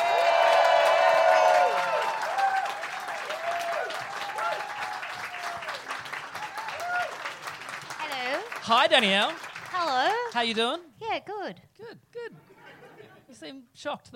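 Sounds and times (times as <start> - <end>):
podcast audience applause welcoming a returning guest: 0.0 - 10.8
speech: 8.7 - 12.5, 13.4 - 14.1
laughter: 12.3 - 13.3.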